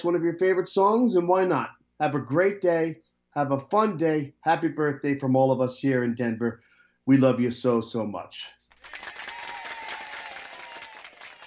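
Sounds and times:
speech: 0.0s - 9.2s
large crowd cheering and applauding: 8.7s - 11.4s
people shouting: 8.9s - 11.4s.

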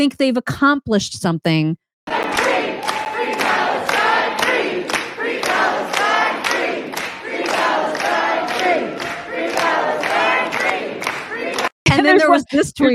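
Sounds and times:
speech: 0.0s - 1.8s, 12.1s - 12.9s
celebrating crowd clapping off-beat: 2.1s - 11.8s
voices chanting and cheering: 2.1s - 12.4s.

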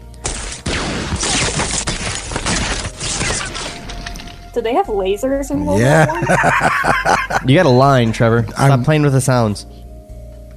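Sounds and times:
machine gun fire sound effect: 0.2s - 3.9s
bullets ricocheting: 0.2s - 4.0s
speech: 4.6s - 9.8s
laughter: 5.8s - 8.5s.

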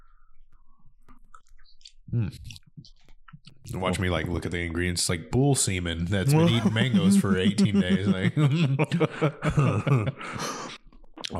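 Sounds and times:
person chewing and eating a white dessert: 1.1s - 3.6s
speech: 2.1s - 2.5s, 3.7s - 10.7s
laughter: 6.2s - 10.6s.

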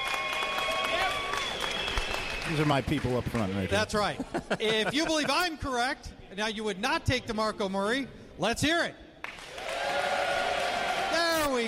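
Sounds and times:
audience applauding: 0.0s - 4.2s, 9.2s - 11.6s
faint whistle-like tones: 1.2s - 2.6s
speech: 2.5s - 9.0s
laughter: 3.9s - 5.8s.

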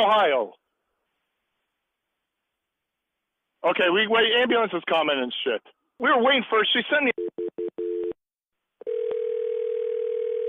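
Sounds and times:
speech: 0.0s - 0.6s, 3.6s - 7.6s
telephone tones during 911 call transfer: 7.2s - 8.2s, 8.8s - 10.4s.

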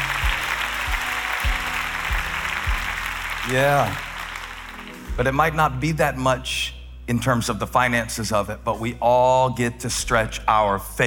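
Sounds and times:
audience applauding: 0.0s - 5.2s
speech: 3.5s - 4.1s, 5.2s - 11.0s.

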